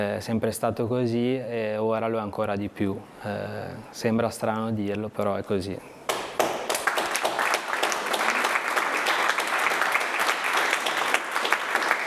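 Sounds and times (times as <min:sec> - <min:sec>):
speech: 0:00.0 - 0:06.0
loud audience applause: 0:06.1 - 0:12.0.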